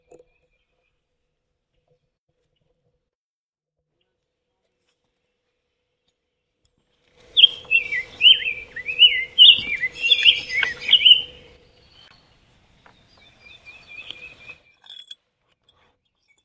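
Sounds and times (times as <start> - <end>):
grosbeak singing a long caroling song: 7.2 - 15.1.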